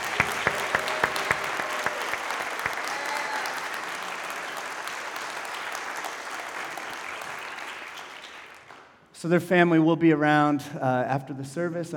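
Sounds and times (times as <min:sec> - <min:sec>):
congregation applauding at a church service: 0:00.0 - 0:09.0
speech: 0:09.2 - 0:11.9.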